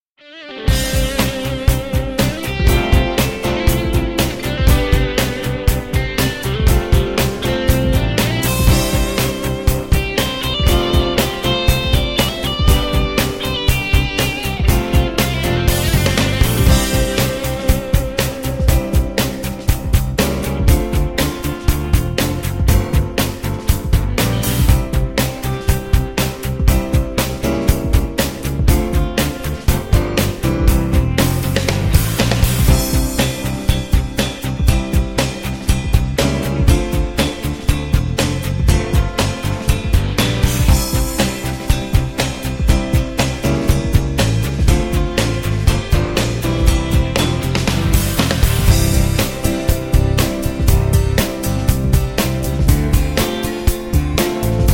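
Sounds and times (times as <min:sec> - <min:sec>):
backing track without wind instruments: 0:00.3 - 0:54.7.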